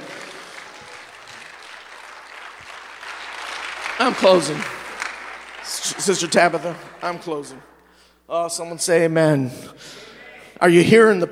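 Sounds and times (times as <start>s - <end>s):
audience clapping: 0.0s - 8.0s
speech: 4.0s - 4.8s, 5.9s - 7.7s, 8.3s - 10.0s, 10.6s - 11.2s.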